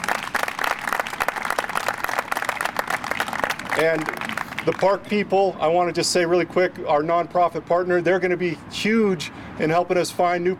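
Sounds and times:
audience applause: 0.0s - 4.8s
speech: 3.8s - 10.5s.

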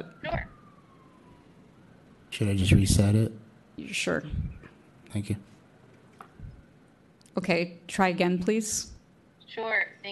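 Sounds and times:
sirens passing: 0.0s - 3.2s
speech: 2.4s - 5.5s, 7.4s - 8.9s, 9.5s - 10.1s.

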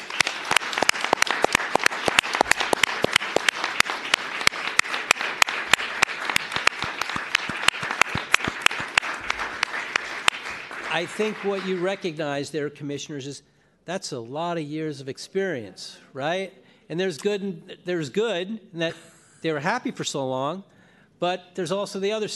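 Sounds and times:
crowd applause: 0.0s - 12.1s
speech: 11.0s - 22.3s.

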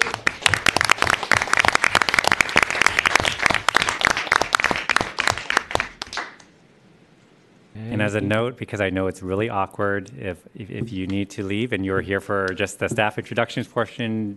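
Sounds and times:
audience applause: 0.0s - 6.4s
speech: 8.1s - 14.3s.

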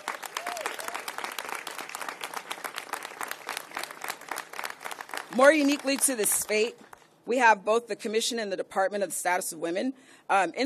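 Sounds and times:
audience applause from a sizable audience: 0.0s - 6.6s
speech: 5.3s - 10.6s.

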